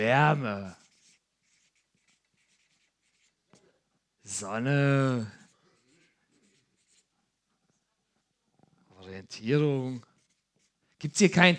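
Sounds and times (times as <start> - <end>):
speech: 0.0 - 0.8, 4.2 - 5.4, 9.0 - 10.1, 11.0 - 11.5
scratchy writing strokes: 0.0 - 3.7, 4.3 - 7.8, 9.5 - 11.2.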